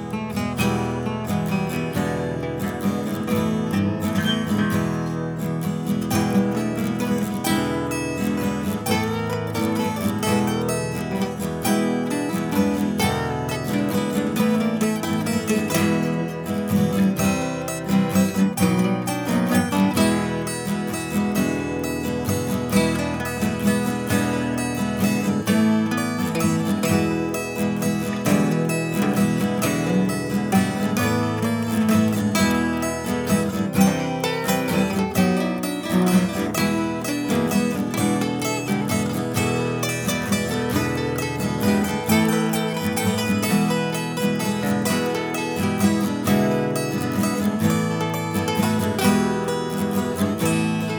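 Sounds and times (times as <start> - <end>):
guitar noodling: 0.2 - 50.9.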